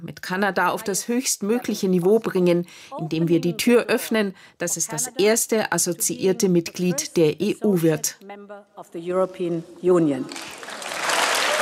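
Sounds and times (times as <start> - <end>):
speech: 0.0 - 10.8
thunderous applause and standing ovation: 10.6 - 11.5.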